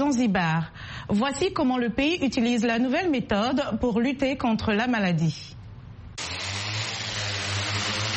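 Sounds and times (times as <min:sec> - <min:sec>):
speech: 0:00.1 - 0:05.6
crop-spraying drone rotors whirring: 0:06.2 - 0:08.1.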